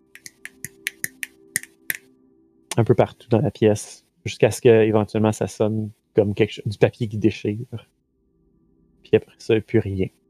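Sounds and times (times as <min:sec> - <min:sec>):
crisp finger snaps imitating small crackles of fading lightning: 0:00.2 - 0:02.1
speech: 0:02.8 - 0:07.9, 0:09.1 - 0:10.2.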